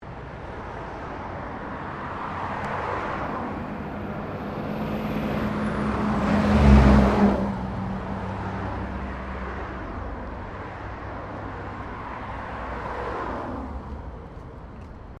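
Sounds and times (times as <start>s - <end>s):
truck passing by in traffic: 2.9s - 14.8s.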